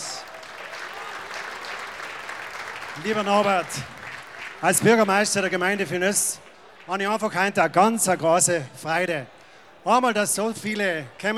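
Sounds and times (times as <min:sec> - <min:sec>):
audience applause in a festival tent: 0:00.0 - 0:07.0
speech: 0:03.0 - 0:04.0, 0:04.6 - 0:11.3.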